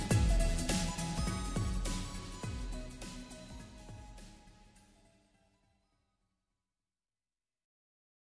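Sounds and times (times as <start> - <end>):
sped-up nightcore music: 0.0 - 5.8.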